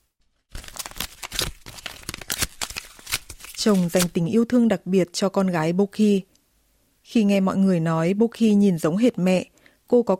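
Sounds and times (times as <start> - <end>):
photograph being torn apart: 0.5 - 4.3
speech: 3.6 - 6.3, 7.1 - 10.1.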